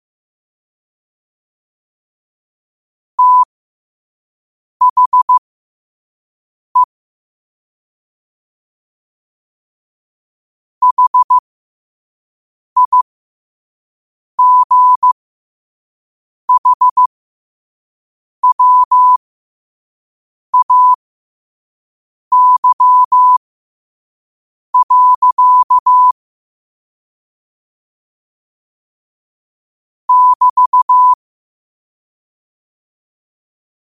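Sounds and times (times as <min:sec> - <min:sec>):
morse code at 5 wpm: 0:03.2 - 0:03.5, 0:04.8 - 0:05.4, 0:10.8 - 0:11.4, 0:12.8 - 0:13.0, 0:14.4 - 0:15.1, 0:16.5 - 0:17.1, 0:18.4 - 0:19.2, 0:20.6 - 0:21.0, 0:22.3 - 0:23.4, 0:24.8 - 0:26.2, 0:30.1 - 0:31.2.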